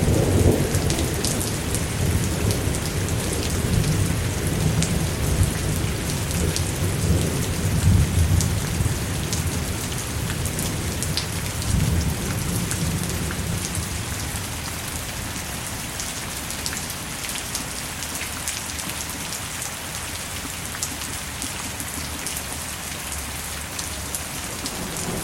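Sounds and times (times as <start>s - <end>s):
deep rolling thunder: 0.0s - 14.0s, 24.6s - 25.2s
rainstorm pouring down: 0.0s - 25.2s.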